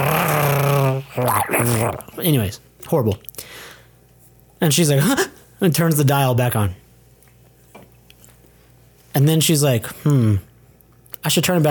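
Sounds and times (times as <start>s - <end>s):
voice imitating a digital engine-like monster roar: 0.0s - 2.2s
speech: 1.2s - 3.6s, 4.6s - 6.8s, 9.2s - 10.5s, 11.2s - 11.7s.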